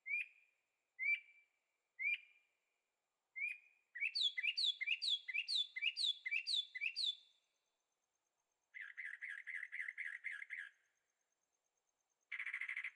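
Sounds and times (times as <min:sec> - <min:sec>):
birdsong: 0:00.0 - 0:02.5, 0:03.4 - 0:07.5, 0:08.7 - 0:11.0, 0:12.1 - 0:12.9.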